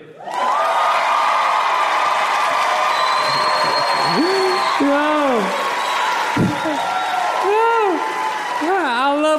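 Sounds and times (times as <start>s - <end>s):
audience cheering: 0.2s - 9.3s.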